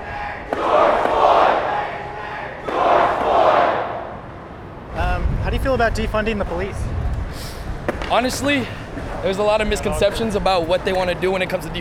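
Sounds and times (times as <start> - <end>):
protest crowd chanting led by the organizer at a rally about defunding the police: 0.0 - 4.5
speech: 5.6 - 7.5, 8.1 - 11.7.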